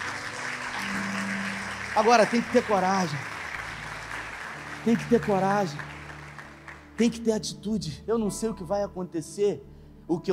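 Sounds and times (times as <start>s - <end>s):
audience applause: 0.0s - 7.2s
speech: 2.0s - 3.3s, 4.8s - 5.9s, 7.0s - 10.3s.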